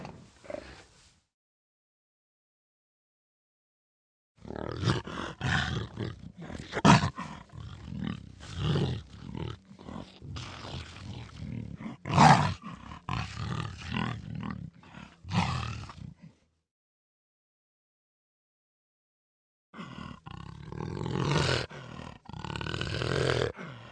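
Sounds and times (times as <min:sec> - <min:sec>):
jaguar growling: 0:04.4 - 0:16.4, 0:19.8 - 0:23.8.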